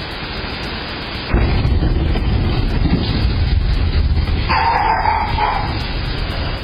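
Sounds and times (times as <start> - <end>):
meteor sonic boom explosion: 1.3 - 6.6.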